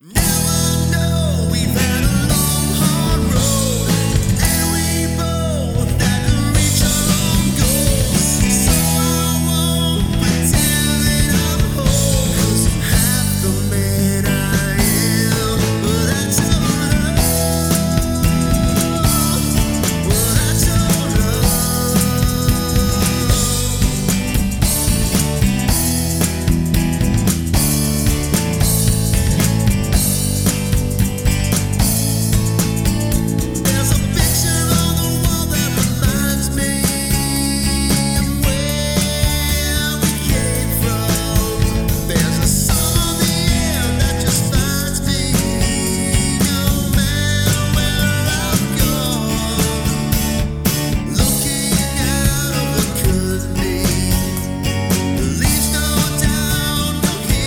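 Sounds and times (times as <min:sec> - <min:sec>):
karaoke harmony singing: 0:00.0 - 0:57.4.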